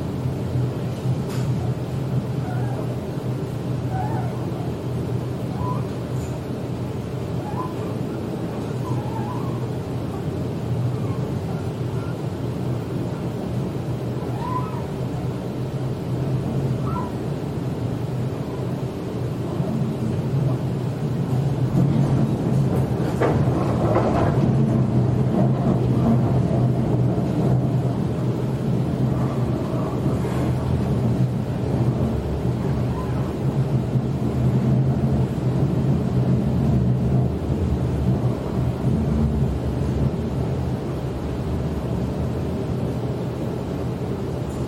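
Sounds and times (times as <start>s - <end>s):
Sydney train heading into the city: 0.0s - 44.6s
faint chirps and squeaks: 8.8s - 9.7s.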